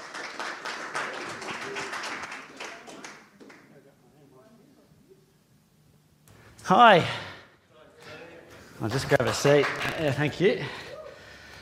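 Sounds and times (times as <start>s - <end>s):
audience applause: 0.0s - 3.7s, 8.8s - 10.4s
speech: 6.7s - 7.3s, 8.8s - 10.9s.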